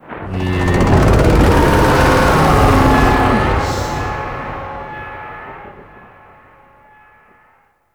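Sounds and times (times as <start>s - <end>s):
distant idle void dragon vocal: 0.2s - 4.5s.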